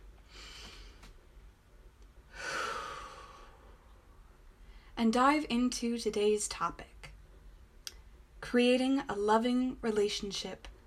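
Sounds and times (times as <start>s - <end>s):
deep breath: 2.3s - 5.0s
speech: 5.0s - 6.9s, 8.5s - 10.7s.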